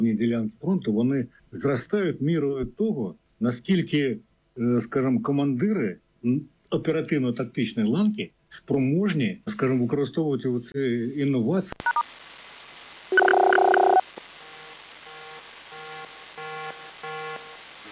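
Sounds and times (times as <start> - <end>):
speech: 0.0 - 12.2, 13.1 - 13.5
air raid alert warning tone: 13.1 - 14.0
repeated short beeps: 13.1 - 14.0.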